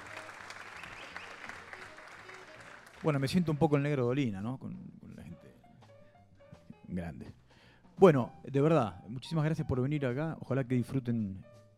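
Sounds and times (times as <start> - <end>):
studio audience applause: 0.0 - 3.8
speech: 3.0 - 5.0, 6.9 - 7.4, 8.0 - 11.5.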